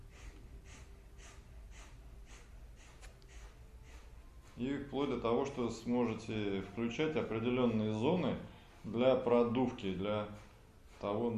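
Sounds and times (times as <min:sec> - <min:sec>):
sharp forceful nasal exhalations in kapalabhati yoga breathing: 0:00.0 - 0:04.6
speech: 0:04.6 - 0:11.3.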